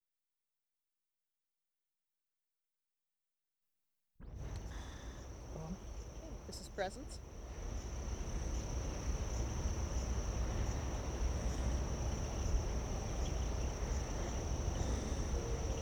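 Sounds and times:
cricket chorus trilling in late summer: 4.2 - 15.8.

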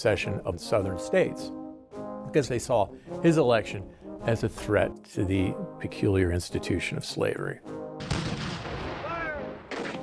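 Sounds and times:
speech: 0.0 - 1.6, 2.3 - 8.2
cannon fire from the Confederate bombardment of Fort Sumter in 1861: 8.0 - 10.0.

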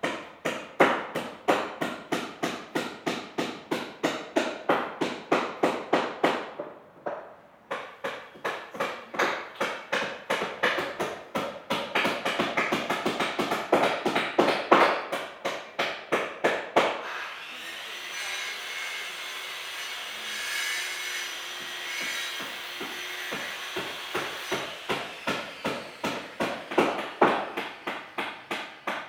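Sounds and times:
hammers in home construction: 0.0 - 17.1, 18.7 - 29.0
saws in home construction: 17.0 - 26.7.

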